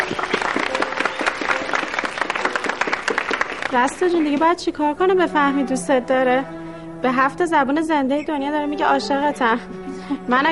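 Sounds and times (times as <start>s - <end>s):
university students clapping in honour of their professor: 0.0s - 4.5s
speech: 3.7s - 10.5s.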